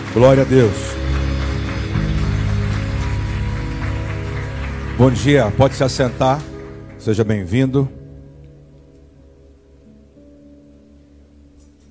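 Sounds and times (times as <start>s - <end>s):
audience applauding loudly: 0.0s - 8.0s
speech: 0.2s - 1.0s, 5.0s - 8.0s.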